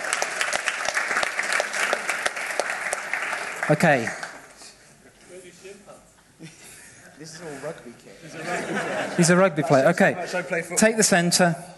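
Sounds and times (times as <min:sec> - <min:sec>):
audience applause: 0:00.0 - 0:04.5
speech: 0:03.7 - 0:04.2, 0:07.2 - 0:11.7
laughter: 0:06.4 - 0:07.6, 0:08.2 - 0:09.8.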